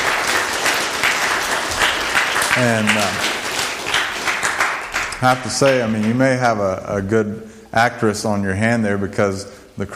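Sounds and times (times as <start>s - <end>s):
crowd applause: 0.0s - 6.2s
speech: 2.6s - 3.3s, 5.2s - 9.9s.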